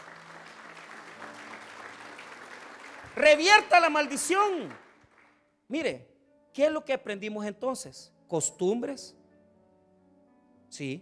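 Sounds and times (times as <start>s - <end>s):
audience applause: 0.0s - 5.4s
speech: 3.2s - 4.8s, 5.7s - 9.2s, 10.7s - 11.0s.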